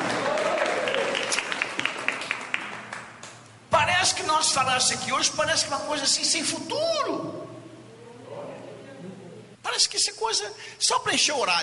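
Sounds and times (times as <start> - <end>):
audience applauding: 0.0 - 3.4
speech: 4.5 - 7.5, 10.3 - 11.6.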